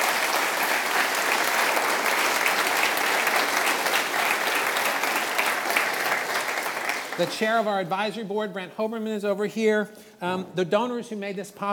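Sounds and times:
audience applause: 0.0 - 7.4
speech: 7.2 - 11.7.

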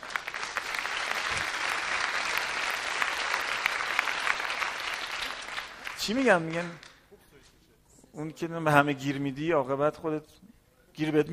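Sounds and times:
audience applause: 0.0 - 7.0
speech: 6.1 - 6.9, 8.2 - 11.3.

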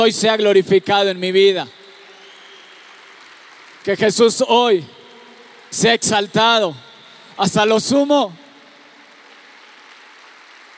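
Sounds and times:
speech: 0.0 - 1.8, 3.8 - 5.0, 5.7 - 8.4
crowd applauding: 0.0 - 10.7.

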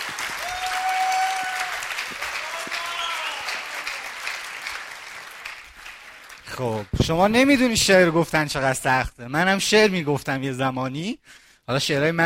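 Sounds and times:
audience applause: 0.0 - 7.0
speech: 6.6 - 12.2.

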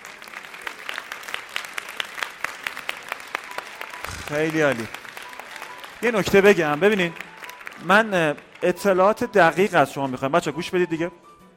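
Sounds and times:
children applauding themselves: 0.0 - 9.0
speech: 4.3 - 5.0, 6.0 - 7.2, 7.8 - 11.2.

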